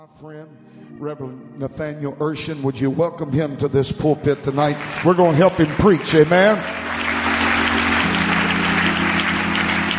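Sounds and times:
speech: 0.0s - 6.9s
crowd audience clapping hands: 4.4s - 9.9s.

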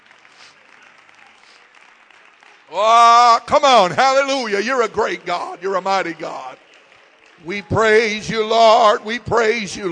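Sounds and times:
audience applause: 0.0s - 9.3s
speech: 2.7s - 6.6s, 7.4s - 9.9s.

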